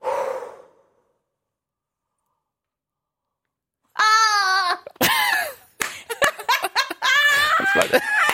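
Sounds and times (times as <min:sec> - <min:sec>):
breathy exhale: 0:00.0 - 0:01.3
laughter: 0:05.0 - 0:08.3.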